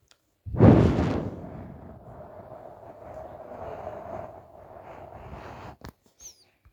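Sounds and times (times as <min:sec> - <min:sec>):
wind: 0:00.4 - 0:05.9.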